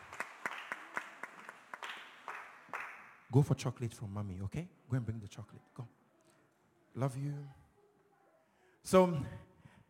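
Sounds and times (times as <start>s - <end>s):
applause: 0.0s - 3.3s
speech: 3.3s - 6.0s, 7.0s - 7.6s, 8.8s - 9.5s.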